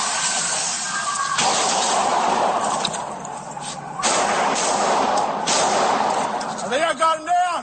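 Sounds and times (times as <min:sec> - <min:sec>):
constant roar of noise: 0:00.0 - 0:07.6
gunfire bursts in police body cam footage: 0:01.4 - 0:02.8, 0:04.0 - 0:06.5.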